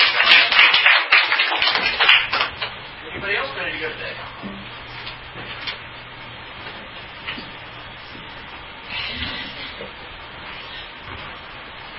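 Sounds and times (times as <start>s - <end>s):
class clapping: 0.0s - 2.8s.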